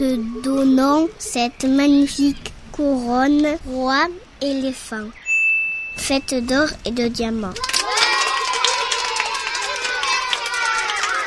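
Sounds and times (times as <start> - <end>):
speech: 0.0 - 5.2, 6.0 - 7.8
crowd cheering: 7.6 - 11.2.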